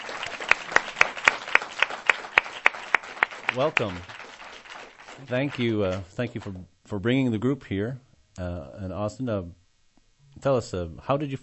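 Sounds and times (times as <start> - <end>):
audience applause: 0.0 - 6.5
speech: 3.5 - 4.1, 5.2 - 9.6, 10.4 - 11.4.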